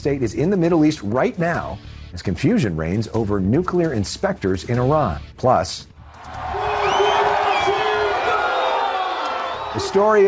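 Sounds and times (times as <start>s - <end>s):
speech: 0.0s - 6.5s, 9.8s - 10.2s
football fans cheering a Cristiano Ronaldo World Cup goal for Portugal: 6.1s - 10.2s
whoops and shouting voices: 6.2s - 10.2s.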